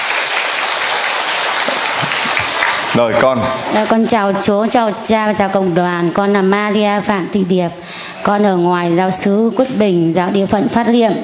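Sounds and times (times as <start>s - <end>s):
audience applauding: 0.0s - 3.7s
speech: 3.0s - 11.2s.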